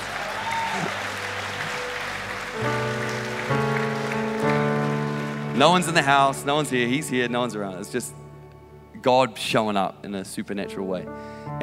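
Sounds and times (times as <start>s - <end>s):
crowd audience applause: 0.0s - 6.9s
speech: 5.6s - 8.2s, 9.0s - 11.6s.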